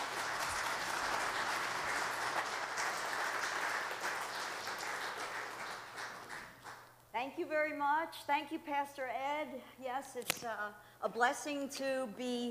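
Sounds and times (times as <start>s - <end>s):
church congregation applauding a guest speaker: 0.0s - 6.9s
speech: 7.3s - 12.4s.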